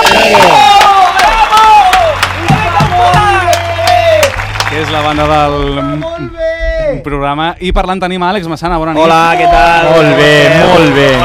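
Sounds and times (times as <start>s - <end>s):
applause: 0.0s - 6.1s
cheering: 0.0s - 6.1s, 9.0s - 11.2s
speech: 5.2s - 6.4s, 7.0s - 11.2s.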